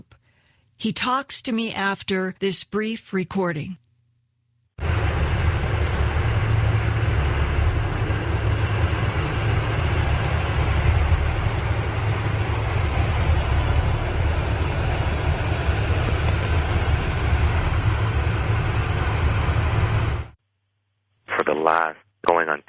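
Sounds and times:
speech: 0.8s - 3.8s, 21.7s - 22.6s
broad rumbling noise: 4.8s - 20.4s
low pulsing bass hum: 4.8s - 20.4s.

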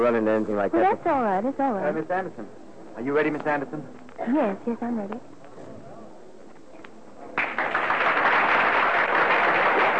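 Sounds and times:
speech: 0.0s - 5.3s
audience applauding: 7.4s - 9.9s.

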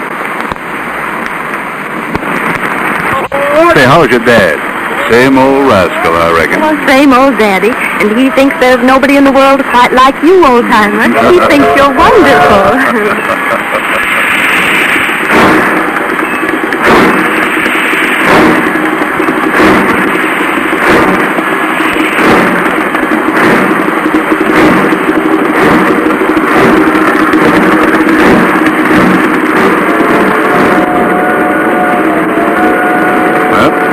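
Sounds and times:
Empire Builder train departing: 0.0s - 33.9s
speech: 3.8s - 14.4s
laughter: 11.1s - 14.4s
train wheel clacks: 15.2s - 30.9s.

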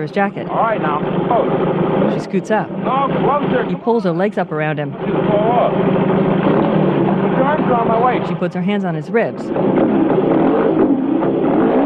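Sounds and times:
speech: 0.0s - 6.8s, 7.4s - 10.9s
motorcycle engine droning riding off through a gravel parking lot: 0.0s - 11.8s.

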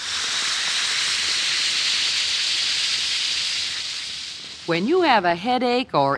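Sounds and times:
Alka-Seltzer tablet fizzing in water glass: 0.0s - 4.8s
speech: 4.7s - 6.1s.

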